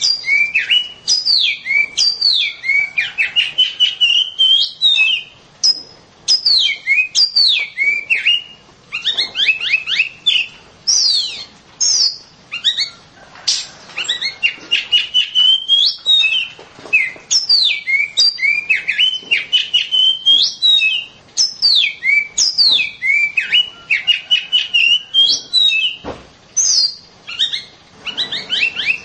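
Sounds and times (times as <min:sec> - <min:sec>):
Oriental magpie-robin song of chattered notes and whistles: 0:00.0 - 0:26.0, 0:26.6 - 0:29.0.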